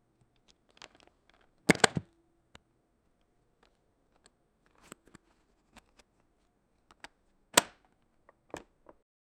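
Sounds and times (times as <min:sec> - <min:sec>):
briefcase opening: 0:01.7 - 0:02.1.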